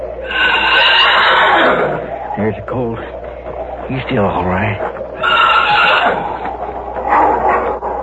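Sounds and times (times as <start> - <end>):
wolf snarling and growling in a shed: 0.3 - 2.1, 5.2 - 8.0
speech: 3.9 - 4.9.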